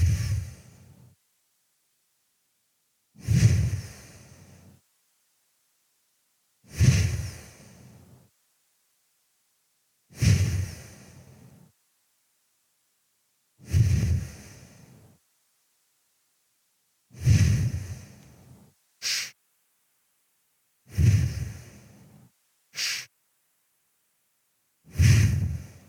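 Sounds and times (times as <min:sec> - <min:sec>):
slow deep breathing during a guided breathing exercise: 0:00.0 - 0:01.2, 0:03.2 - 0:04.9, 0:06.6 - 0:08.3, 0:10.1 - 0:11.8, 0:13.6 - 0:15.2, 0:17.1 - 0:19.4, 0:20.9 - 0:23.1, 0:24.8 - 0:25.8.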